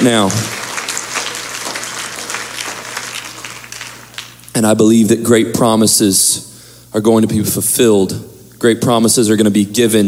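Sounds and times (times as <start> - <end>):
speech: 0.0 - 0.6, 4.6 - 10.0
audience clapping hands: 0.0 - 4.7.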